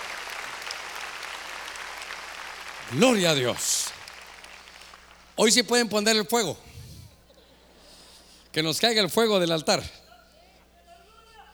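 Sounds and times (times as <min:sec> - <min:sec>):
audience clapping: 0:00.0 - 0:05.8
speech: 0:02.9 - 0:04.0, 0:05.4 - 0:06.7, 0:08.5 - 0:10.0.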